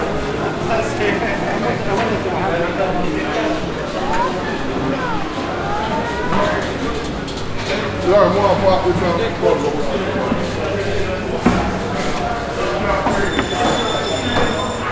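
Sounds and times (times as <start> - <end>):
overlapping voices in Brixton: 0.0 - 14.9
footstep-like taps: 3.0 - 13.8
high bright ringing tone: 12.8 - 14.9.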